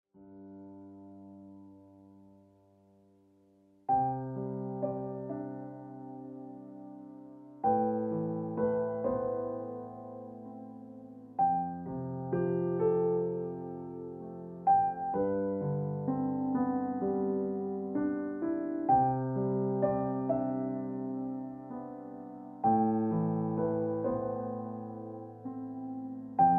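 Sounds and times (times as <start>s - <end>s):
piano ringtone music: 3.9s - 26.5s.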